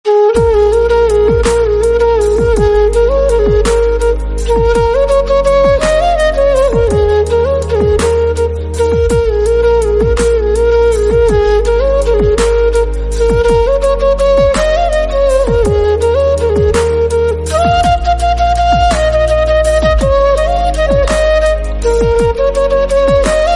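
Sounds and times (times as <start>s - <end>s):
flute ringtone: 0.1s - 23.5s.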